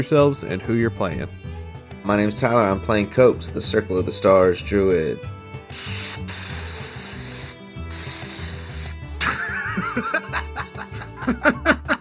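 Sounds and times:
speech: 0:00.0 - 0:06.4, 0:10.0 - 0:10.2, 0:11.2 - 0:11.8
compressed air spray dusting a keyboard: 0:05.7 - 0:09.0
laughter: 0:09.2 - 0:11.9.

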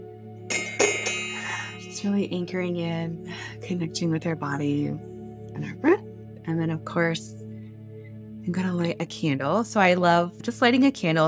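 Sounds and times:
bell ringing: 0:00.5 - 0:02.2
speech: 0:02.0 - 0:07.4, 0:08.4 - 0:11.2.

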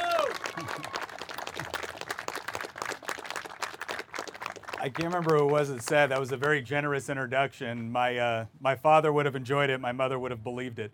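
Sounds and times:
audience applause welcoming a speaker: 0:00.0 - 0:06.7
speech: 0:04.8 - 0:10.9.

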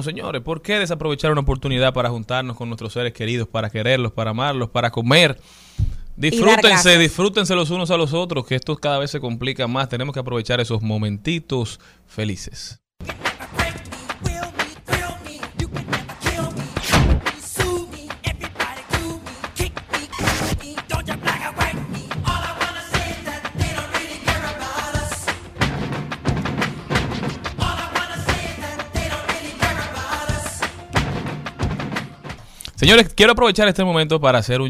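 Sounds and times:
speech: 0:00.0 - 0:13.2, 0:32.8 - 0:34.6
pop song with heavy drum beat and vocal melody: 0:05.8 - 0:06.9, 0:13.0 - 0:32.4.

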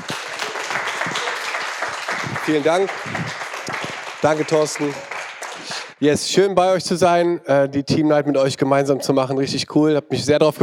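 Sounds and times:
audience applause: 0:00.0 - 0:06.0
speech: 0:02.4 - 0:03.4, 0:04.2 - 0:10.6.

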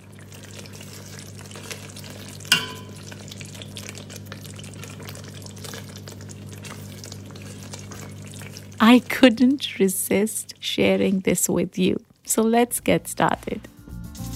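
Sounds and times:
chili sauce frying and sizzling: 0:00.0 - 0:10.4
speech: 0:08.8 - 0:13.7.

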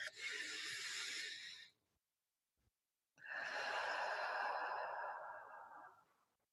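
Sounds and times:
slow deep breath in and out during a guided breathing exercise: 0:00.0 - 0:01.8, 0:03.2 - 0:06.4.

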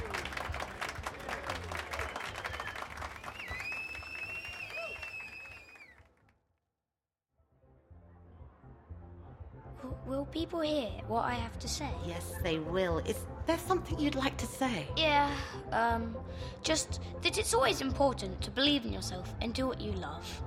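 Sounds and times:
audience round of applause: 0:00.0 - 0:06.1
speech: 0:10.1 - 0:20.4.

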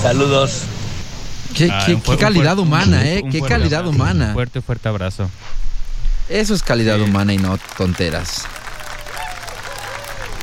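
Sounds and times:
speech: 0:00.0 - 0:00.8, 0:01.5 - 0:05.7, 0:06.3 - 0:08.6
euphoric applause: 0:06.9 - 0:10.4.

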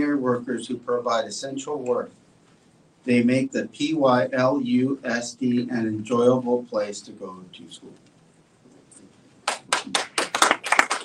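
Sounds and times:
speech: 0:00.0 - 0:02.2, 0:03.0 - 0:08.1
applause: 0:09.4 - 0:11.0.

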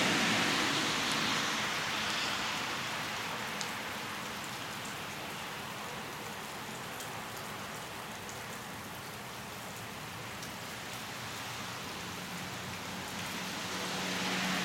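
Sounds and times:
vehicle passing: 0:00.0 - 0:01.9, 0:13.0 - 0:14.6
steady morning rain: 0:00.0 - 0:14.6.

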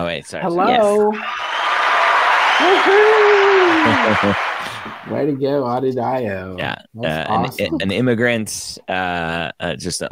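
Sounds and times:
speech: 0:00.0 - 0:01.5, 0:02.6 - 0:04.5, 0:05.1 - 0:10.1
applause sound effect: 0:01.1 - 0:05.3
laughter: 0:02.5 - 0:05.1, 0:07.0 - 0:08.2.

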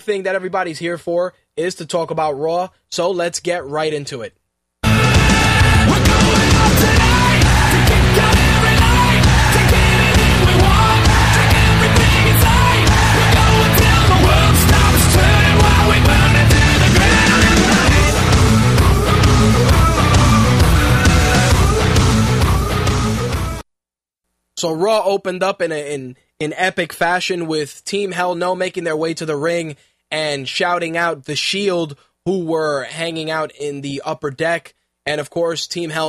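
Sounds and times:
speech: 0:00.0 - 0:04.4, 0:24.6 - 0:36.0
wrestler's entrance theme music with sustained melodic tones over punchy beat: 0:04.8 - 0:23.6.

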